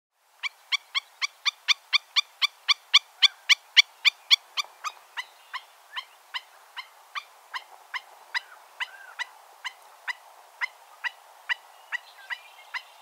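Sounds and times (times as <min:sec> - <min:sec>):
stilt calls: 0:00.4 - 0:12.9.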